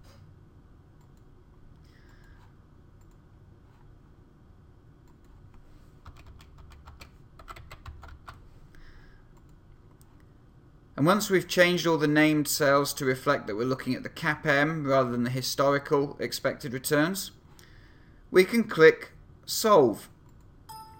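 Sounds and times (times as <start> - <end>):
low hum: 0.0 - 20.9
computer keyboard typing into spreadsheet Solver constraints: 6.0 - 8.4
speech: 11.0 - 17.4, 18.3 - 20.1.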